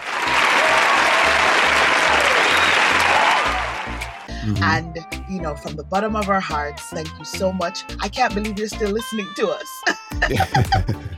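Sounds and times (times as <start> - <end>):
dense applause from a group of people: 0.0 - 4.8
laughter: 4.4 - 4.8, 9.8 - 11.1
speech: 4.5 - 11.1.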